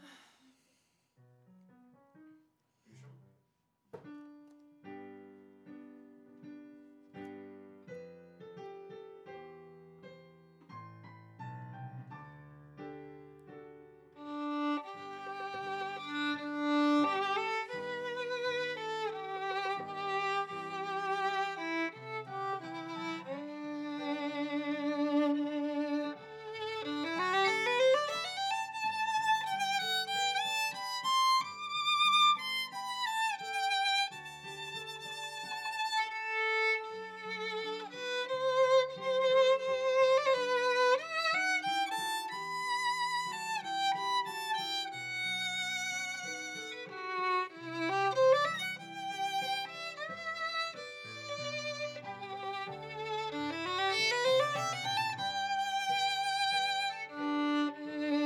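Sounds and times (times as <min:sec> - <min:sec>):
viola: 0:14.2 - 0:58.2.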